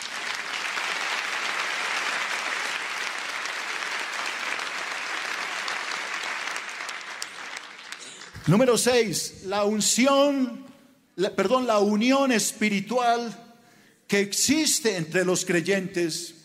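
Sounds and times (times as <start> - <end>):
audience applause: 0.0 - 8.7
speech: 8.4 - 13.4, 14.1 - 16.4.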